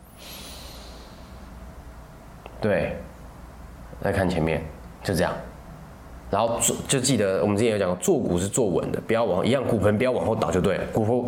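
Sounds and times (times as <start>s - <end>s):
deep breath drawn in through the nose during a seated posture exercise: 0.0s - 1.6s
speech: 2.6s - 3.1s, 4.0s - 5.5s, 6.3s - 11.2s.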